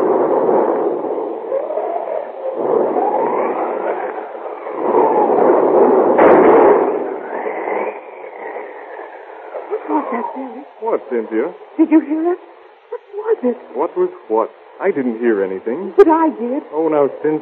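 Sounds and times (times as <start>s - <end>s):
thunderstorm: 0.0s - 11.6s
speech: 11.1s - 12.5s, 13.3s - 17.4s.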